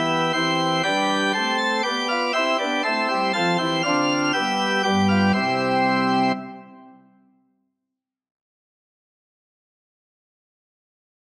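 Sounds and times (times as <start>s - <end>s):
organ music: 0.0s - 7.2s.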